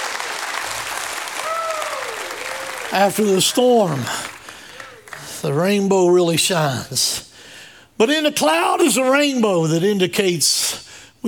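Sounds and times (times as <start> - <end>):
audience hand clapping: 0.0 - 5.8
audience shouting praise: 1.4 - 5.4
speech: 2.9 - 4.3, 5.4 - 7.3, 8.0 - 11.2.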